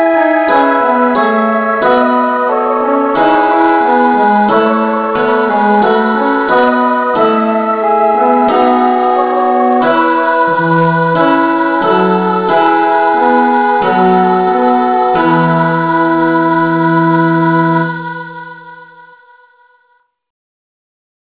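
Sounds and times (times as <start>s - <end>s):
instrumental music in E: 0.0s - 18.9s.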